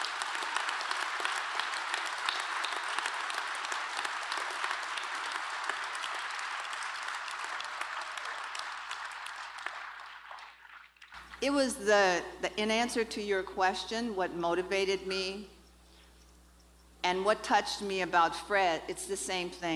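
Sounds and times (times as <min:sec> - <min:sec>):
round of applause: 0:00.0 - 0:11.4
speech: 0:11.4 - 0:15.5, 0:17.1 - 0:19.7.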